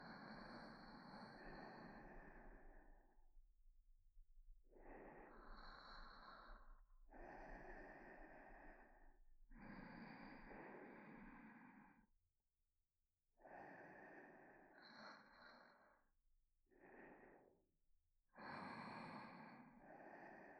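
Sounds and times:
sleeping breathing in both ears: 0.1s - 3.2s, 4.8s - 9.0s, 9.6s - 12.1s, 13.4s - 16.1s, 18.4s - 20.5s.

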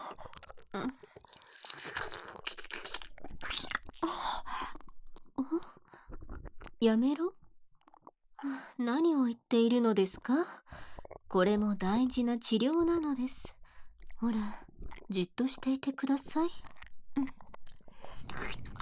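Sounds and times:
woman's voice as a healer saint: 0.7s - 1.0s, 5.4s - 5.7s, 6.8s - 7.4s, 8.4s - 10.7s, 11.2s - 17.4s.

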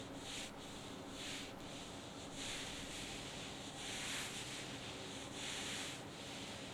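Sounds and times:
ear massage sounds: 0.0s - 6.6s.

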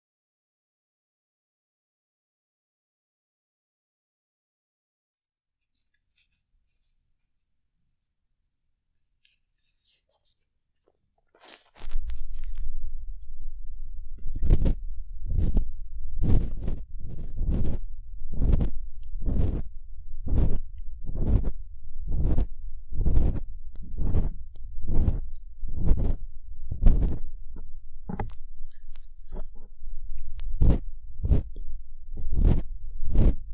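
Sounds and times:
ear cleaning sounds without voice: 11.4s - 33.5s.

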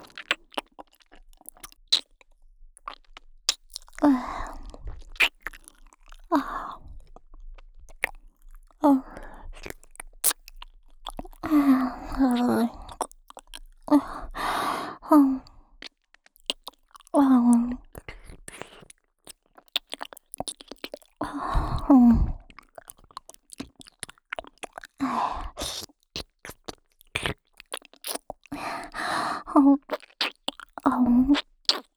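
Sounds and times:
shallow ear licking on the right ear: 0.0s - 14.8s, 15.8s - 31.9s.

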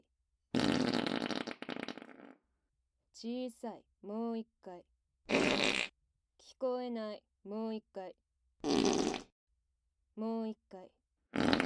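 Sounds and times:
long buzzy fart: 0.5s - 2.4s, 5.3s - 6.0s, 8.6s - 9.3s, 11.3s - 11.6s
speech: 3.2s - 5.7s, 6.6s - 8.8s, 10.2s - 11.0s.

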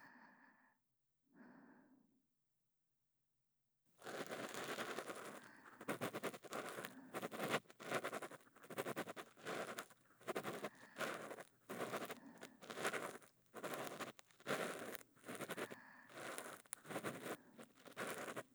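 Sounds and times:
intimate ear cleaning by two people: 4.1s - 18.5s.

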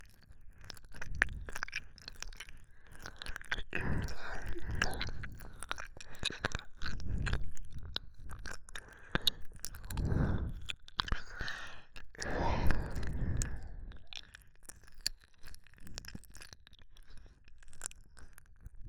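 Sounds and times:
ear licking in left ear: 0.9s - 14.4s.

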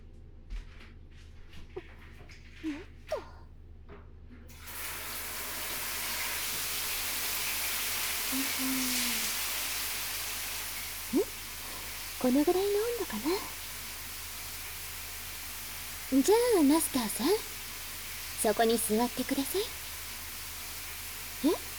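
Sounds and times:
speech: 2.6s - 3.0s, 8.4s - 9.0s, 12.2s - 13.6s, 16.1s - 17.5s, 18.4s - 19.8s
shower water running: 4.5s - 21.7s.

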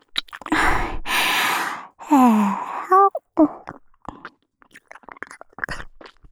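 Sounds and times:
ASMR ear licking in the left ear: 0.4s - 3.7s.

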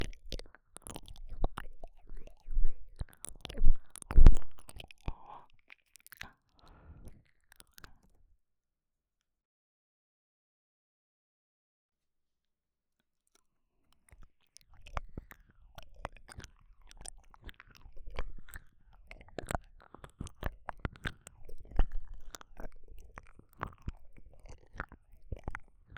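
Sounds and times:
ear licking in right ear, left ear and both ears: 0.0s - 5.4s, 14.1s - 25.9s.

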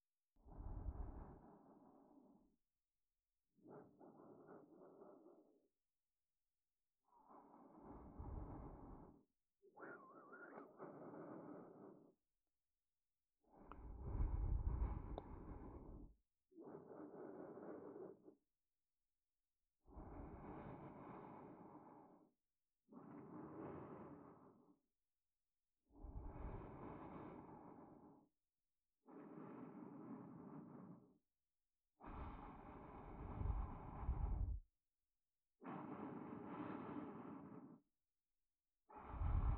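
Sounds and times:
sleep aid loop in left channel: 0.4s - 2.7s, 3.5s - 6.4s, 7.0s - 12.5s, 13.4s - 18.4s, 19.8s - 24.9s, 25.9s - 28.4s, 29.0s - 31.3s, 31.9s - 34.7s, 35.6s - 38.1s, 38.8s - 39.5s.

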